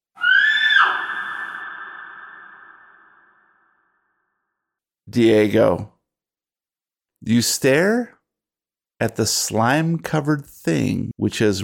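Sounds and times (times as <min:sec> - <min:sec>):
person screaming outside: 0:00.1 - 0:03.2
speech: 0:05.1 - 0:05.9, 0:07.2 - 0:08.2, 0:09.0 - 0:11.6.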